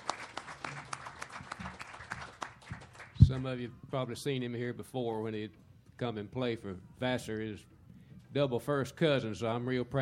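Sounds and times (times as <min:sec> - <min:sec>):
audience applause welcoming a guitarist: 0:00.0 - 0:03.2
speech: 0:03.3 - 0:07.7, 0:08.4 - 0:09.9.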